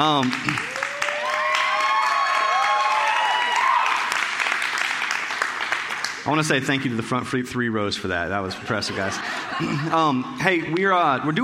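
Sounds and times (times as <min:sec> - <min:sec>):
speech: 0:00.0 - 0:00.7, 0:06.3 - 0:11.4
audience clapping for the band: 0:00.0 - 0:06.9
crowd cheering and whooping: 0:00.5 - 0:04.5
laughter: 0:08.3 - 0:11.2.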